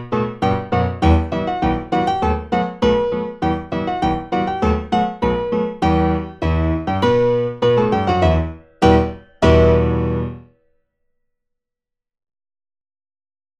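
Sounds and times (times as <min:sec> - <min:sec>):
four-hand practice piece playback: 0:00.0 - 0:10.5.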